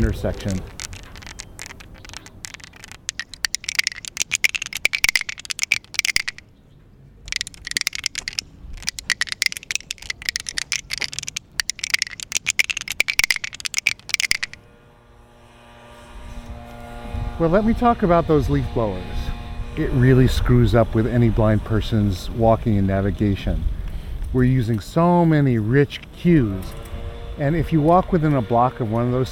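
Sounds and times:
speech: 0.0 - 0.8, 17.4 - 19.2, 19.8 - 23.7, 24.3 - 26.8, 27.4 - 29.3
cane tip rattling over tactile truncated domes: 0.0 - 6.4, 7.3 - 14.6.

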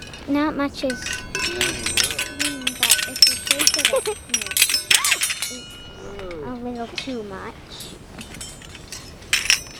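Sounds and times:
wind chime tinkling: 0.0 - 9.7
speech: 0.3 - 2.0, 3.9 - 4.5, 6.6 - 8.3.

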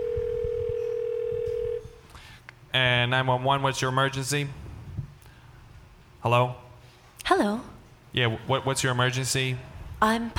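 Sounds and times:
telephone call connecting tone: 0.0 - 2.0
speech: 2.8 - 4.6, 6.2 - 6.6, 7.3 - 10.3.

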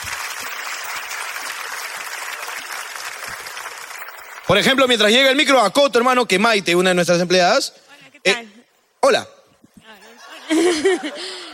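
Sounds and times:
audience applause: 0.0 - 5.5
speech: 4.5 - 9.3, 10.5 - 11.4
laughter: 10.0 - 11.5.

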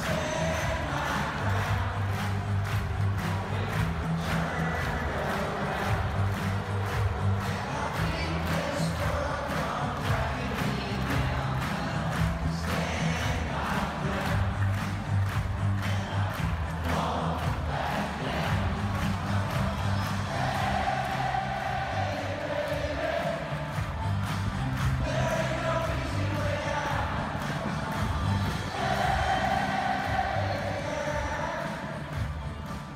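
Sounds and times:
football stadium crowd shouting a song line in unison: 0.0 - 32.9.

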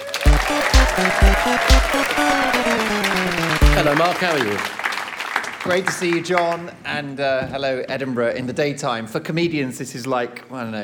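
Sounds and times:
loud walk-on track: 0.0 - 4.3
audience applause and cheering: 0.0 - 5.8
speech: 0.5 - 4.8, 5.6 - 10.8.

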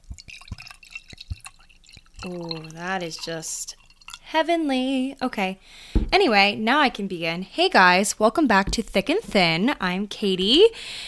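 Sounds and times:
wine pouring into a glass: 0.0 - 4.5
speech: 2.2 - 11.0.

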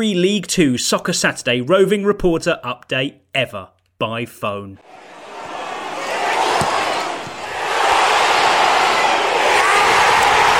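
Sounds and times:
speech: 0.0 - 5.2
football fans celebrating a goal: 4.8 - 10.5.

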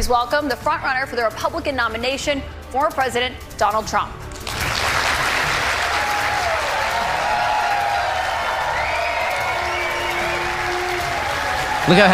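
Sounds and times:
speech: 0.0 - 4.2, 11.9 - 12.1
crowd applause in a standing ovation for Donald Trump at a Republican primary town hall: 4.4 - 12.1.

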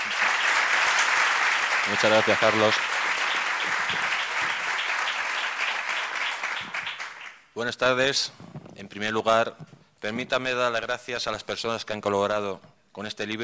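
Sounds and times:
loud applause: 0.0 - 7.4
speech: 1.9 - 3.0, 7.6 - 13.4.

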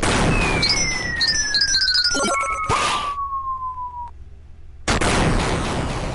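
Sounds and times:
boss robot explosion in the Gunstar Heroes game: 0.0 - 1.5, 4.9 - 6.1
long falling electronic whistle: 0.3 - 4.1
chirpy high tones: 0.4 - 4.1.

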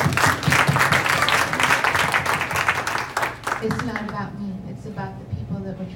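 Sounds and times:
audience applause: 0.0 - 4.0
speech: 3.6 - 5.0.

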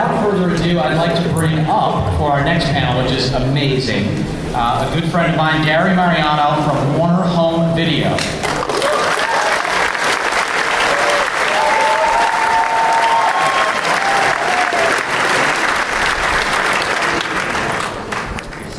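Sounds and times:
speech: 0.7 - 8.5
crowd applauding: 8.4 - 18.7
whistles and cheers: 10.7 - 15.2.

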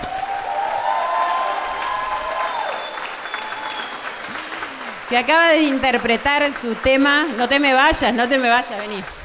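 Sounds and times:
audience applause: 0.0 - 9.2
faint whistles or tonal cries: 2.4 - 4.4
speech: 5.1 - 9.2.

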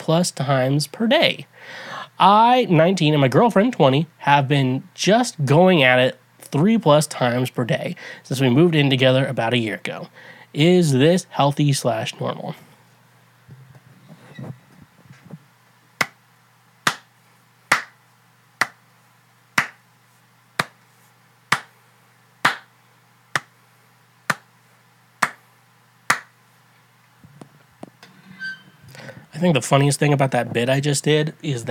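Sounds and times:
speech: 0.0 - 12.7, 29.4 - 31.6
hand clap to sync video and audio: 16.0 - 16.2, 16.8 - 17.1, 17.7 - 18.0, 18.6 - 18.8, 19.6 - 19.8, 20.6 - 20.8, 21.5 - 21.8, 22.4 - 22.7, 23.3 - 23.6, 24.3 - 24.5, 25.2 - 25.4, 26.1 - 26.4.

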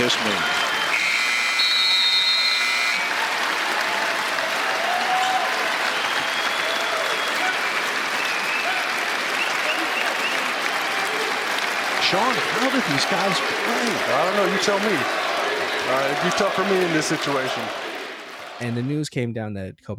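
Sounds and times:
speech: 0.0 - 0.6, 12.1 - 15.2, 15.9 - 17.8, 18.6 - 19.9
large arena crowd applauding and cheering: 0.0 - 19.0
buzzing tone: 1.0 - 3.0.

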